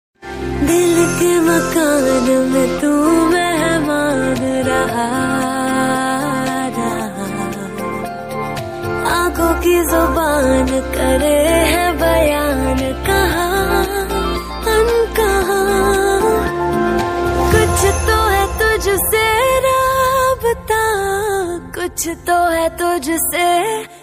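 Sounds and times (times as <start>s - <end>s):
Hindi ringtone music: 0.6s - 23.8s.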